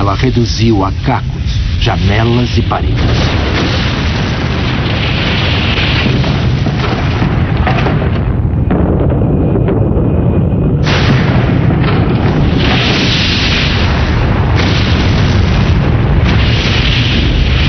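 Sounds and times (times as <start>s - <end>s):
explosion boom with shockwave: 0.0s - 17.6s
speech: 0.2s - 3.6s.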